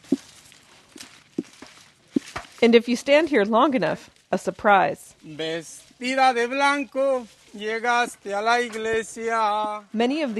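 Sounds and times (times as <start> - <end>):
cherries thudding into buckets: 0.0 - 2.7
speech: 2.6 - 10.3.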